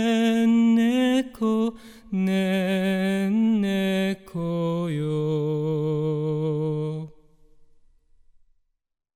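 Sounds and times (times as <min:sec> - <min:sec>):
person singing: 0:00.0 - 0:07.2.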